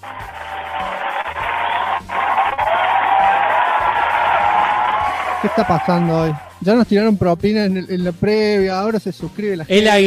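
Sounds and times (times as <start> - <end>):
applause: 0.0 - 6.4
speech: 5.4 - 10.0.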